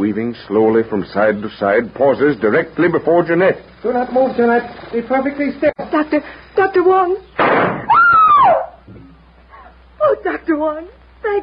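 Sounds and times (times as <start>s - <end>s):
speech: 0.0s - 7.8s, 10.2s - 11.4s
gunshot: 7.4s - 8.6s.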